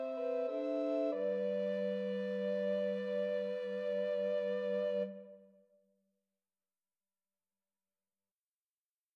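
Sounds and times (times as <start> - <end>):
Scottish island folk tunes: 0.0 - 5.4.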